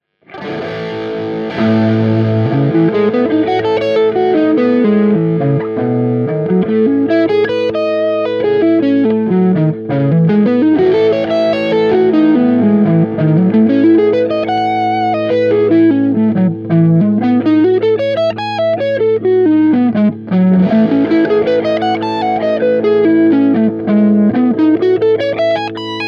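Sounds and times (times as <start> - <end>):
guitar playing Lydian modal arpeggio exercise: 0.0 - 26.0.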